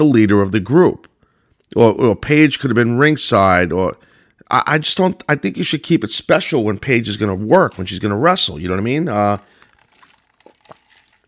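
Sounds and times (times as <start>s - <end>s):
speech: 0.0s - 1.1s, 1.7s - 9.5s
plastic water bottle crinkling while drinking: 6.6s - 11.2s.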